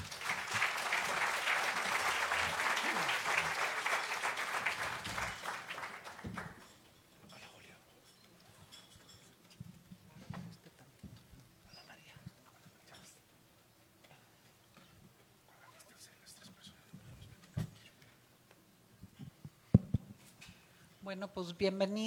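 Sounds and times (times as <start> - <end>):
audience applause: 0.0 - 6.6
speech: 21.1 - 22.0.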